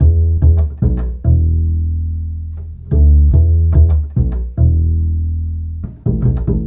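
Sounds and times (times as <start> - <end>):
acoustic bass: 0.0 - 6.6.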